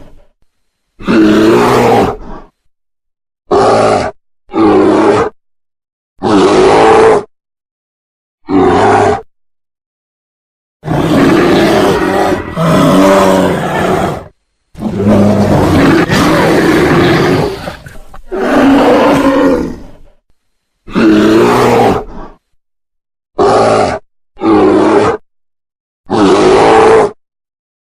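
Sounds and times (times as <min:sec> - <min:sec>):
brown bear roaring: 0:01.0 - 0:02.5, 0:03.5 - 0:05.4, 0:06.2 - 0:07.3, 0:08.4 - 0:09.3, 0:10.8 - 0:20.2, 0:20.9 - 0:22.4, 0:23.4 - 0:25.2, 0:26.1 - 0:27.2.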